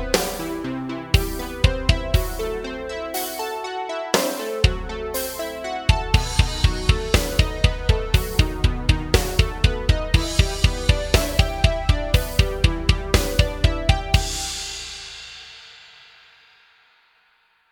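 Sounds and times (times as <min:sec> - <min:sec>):
seventh chords backing track for finger tapping exercise: 0:00.0 - 0:16.0.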